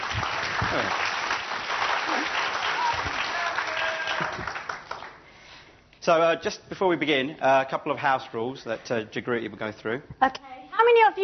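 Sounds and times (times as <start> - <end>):
audience applause: 0.0 - 5.2
speech: 0.7 - 1.0, 6.0 - 11.2.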